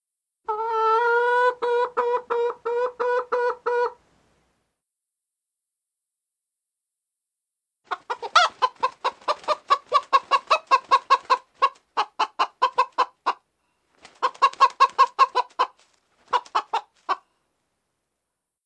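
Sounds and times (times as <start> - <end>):
chicken squawking: 0.5 - 4.0, 7.9 - 13.4, 14.1 - 17.2.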